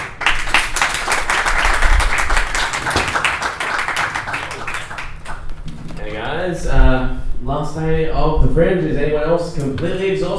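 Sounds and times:
Fringe comedy show audience clapping: 0.0 - 6.4
speech: 7.6 - 10.3.

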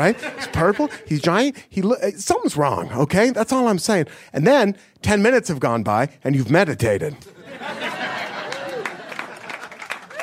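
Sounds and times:
laughter: 0.0 - 1.4, 7.2 - 10.2
speech: 0.0 - 7.8
audience applause: 8.0 - 10.2.

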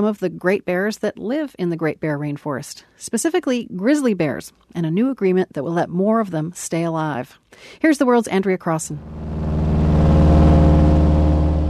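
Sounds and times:
speech: 0.0 - 9.5
engine of a tiny seaplane in flight: 9.0 - 11.6.

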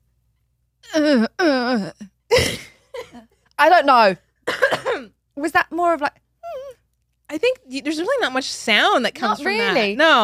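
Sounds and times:
speech: 0.8 - 2.6, 3.6 - 4.7, 5.4 - 6.2, 7.3 - 10.2
person imitating a held-in sneeze: 0.8 - 2.8.

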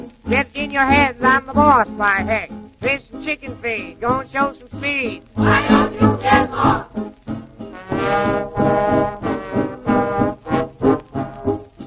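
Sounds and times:
speech: 0.3 - 7.1
horn tooting: 7.7 - 11.0.

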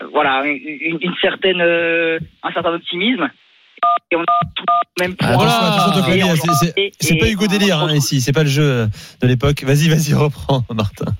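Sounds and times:
speech: 0.2 - 11.1
phone keypad beeps: 6.4 - 6.6.

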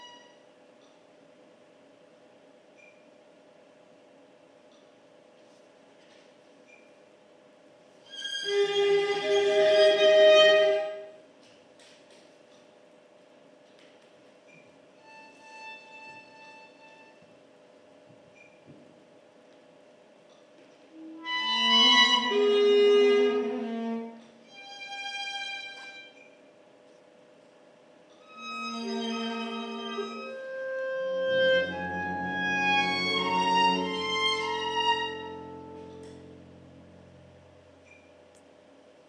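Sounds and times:
orchestra playing: 9.1 - 11.1, 21.1 - 24.0, 28.4 - 37.6.

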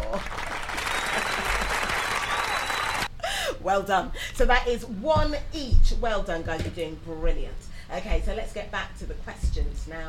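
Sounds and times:
crowd applause: 0.0 - 3.1
speech: 0.1 - 0.4, 3.6 - 10.0.

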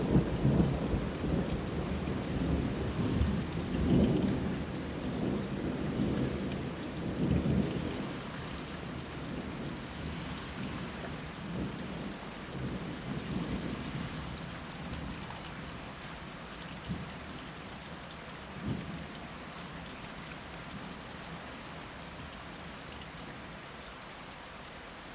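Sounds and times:
thunderstorm in May: 0.0 - 15.9, 16.8 - 17.4, 18.5 - 19.2.

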